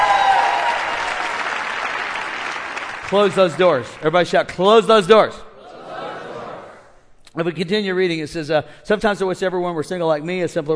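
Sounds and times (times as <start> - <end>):
church congregation clapping: 0.0 - 4.4
speech: 3.1 - 5.4, 7.4 - 10.7.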